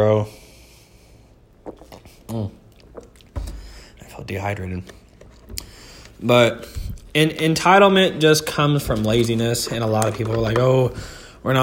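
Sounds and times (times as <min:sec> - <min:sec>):
speech: 0:00.0 - 0:00.4, 0:02.3 - 0:02.6, 0:04.2 - 0:05.0, 0:06.2 - 0:11.6
wet mouth clicks: 0:01.6 - 0:03.6
person drinking a gulp of water: 0:01.6 - 0:04.0.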